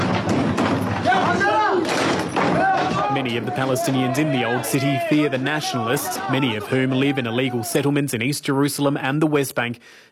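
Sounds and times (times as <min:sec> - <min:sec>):
street brawl with chairs and bottles thrown: 0:00.0 - 0:07.8
speech: 0:03.2 - 0:10.0.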